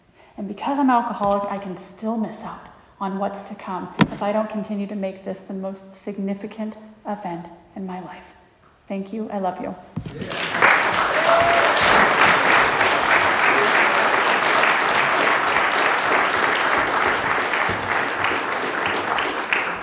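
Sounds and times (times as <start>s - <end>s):
speech: 0.4s - 10.6s
audience applause: 10.1s - 19.8s.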